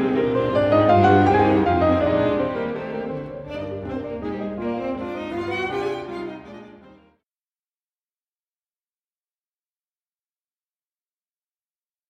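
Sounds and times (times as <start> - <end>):
piano: 0.0 - 7.2.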